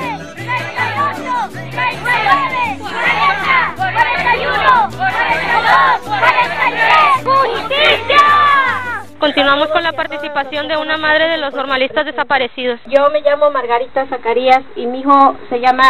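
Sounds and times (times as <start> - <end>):
large crowd shouting and chanting a count: 0.0 - 9.0
speech: 9.2 - 15.8.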